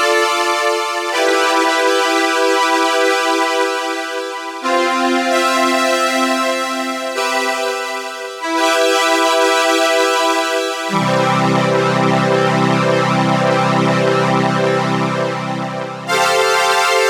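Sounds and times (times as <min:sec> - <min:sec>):
synthesizers: 0:00.0 - 0:17.0
Solina string synthesizer: 0:10.8 - 0:17.0.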